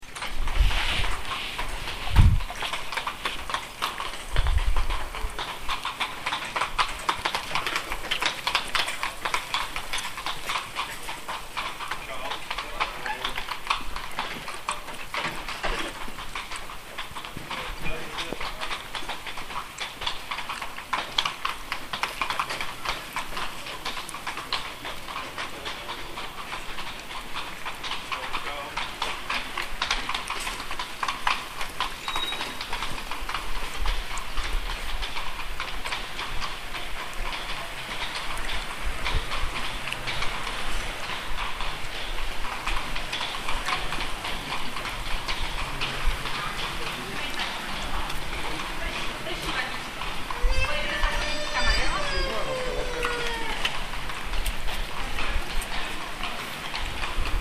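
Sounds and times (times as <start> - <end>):
horse: 0.0 - 57.3.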